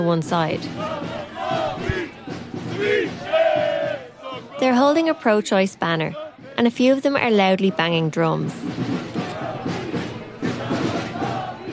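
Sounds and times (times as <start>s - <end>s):
speech: 0.0s - 1.6s, 4.6s - 8.9s
protesters shouting at counter-protesters: 0.7s - 5.4s, 9.2s - 11.7s.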